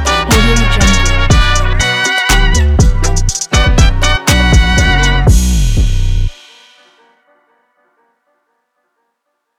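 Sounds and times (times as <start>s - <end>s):
hip hop music: 0.0s - 7.1s.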